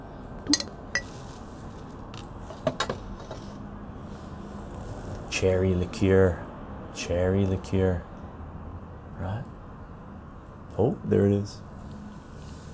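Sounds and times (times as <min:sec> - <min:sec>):
low steady hum: 0:00.0 - 0:12.7
fresh spoon clinking against glass on a patio: 0:00.5 - 0:01.1
speech: 0:05.4 - 0:06.4, 0:07.0 - 0:08.1, 0:09.2 - 0:09.5, 0:10.8 - 0:11.7.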